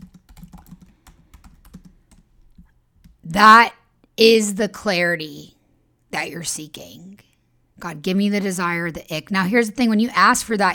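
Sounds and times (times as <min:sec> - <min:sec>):
typing on a computer keyboard: 0:00.0 - 0:03.2
speech: 0:03.3 - 0:10.7.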